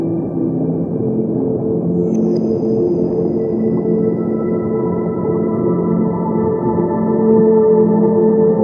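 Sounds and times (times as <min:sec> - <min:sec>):
whale song: 0:00.0 - 0:08.6.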